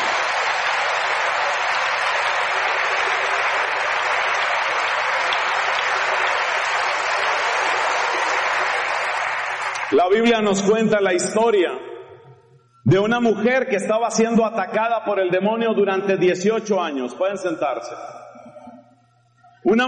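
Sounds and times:
crowd applause: 0.0s - 10.2s
speech: 10.0s - 11.8s, 12.9s - 18.2s, 19.6s - 19.8s.

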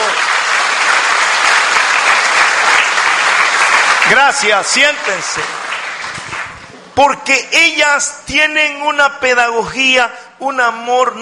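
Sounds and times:
crowd applause: 0.0s - 6.8s
speech: 4.1s - 5.6s, 7.0s - 11.2s.

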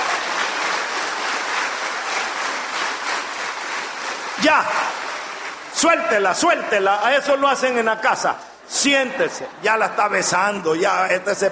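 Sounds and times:
audience applause: 0.0s - 7.9s
speech: 4.4s - 5.0s, 5.8s - 11.5s.

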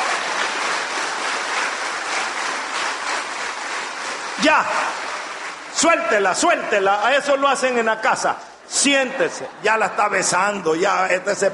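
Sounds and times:
crowd clapping: 0.0s - 8.3s
speech: 4.4s - 5.1s, 5.8s - 11.5s.

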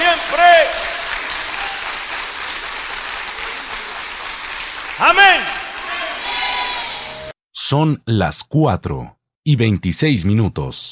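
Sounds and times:
audience applause: 0.0s - 7.3s
speech: 7.7s - 10.9s.

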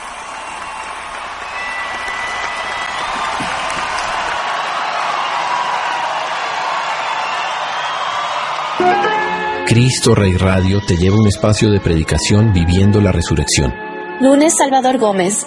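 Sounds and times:
cheers and whoops: 0.0s - 9.5s
audience applause: 0.0s - 11.2s
speech: 9.8s - 15.4s.

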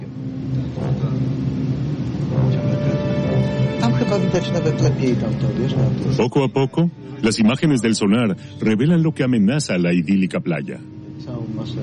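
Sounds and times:
ship's engine droning as the vessel gets under way to scan the seabed: 0.0s - 11.8s
speech: 4.1s - 11.8s.

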